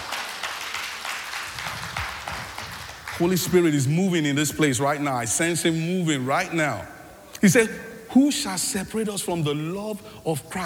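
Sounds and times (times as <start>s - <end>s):
crowd clapping: 0.0s - 4.6s
speech: 3.2s - 10.6s.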